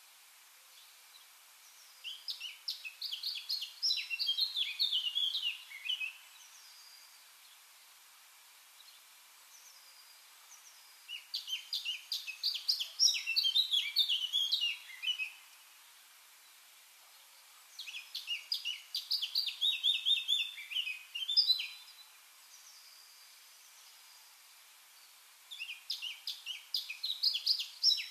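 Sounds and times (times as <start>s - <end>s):
Eurasian blackcap song of chirps and fluty whistles: 1.6s - 7.0s, 9.5s - 15.5s, 17.7s - 23.2s, 25.5s - 28.0s.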